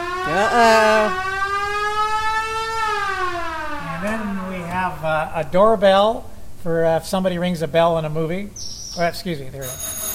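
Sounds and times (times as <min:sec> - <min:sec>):
organ siren effect for movie chase: 0:00.0 - 0:05.2
speech: 0:00.3 - 0:01.3, 0:04.9 - 0:09.9.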